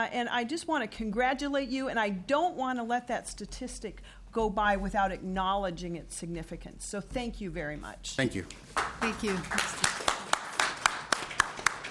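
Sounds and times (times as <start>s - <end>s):
speech: 0.0s - 9.9s
faint claps at a members' meeting: 8.4s - 11.8s.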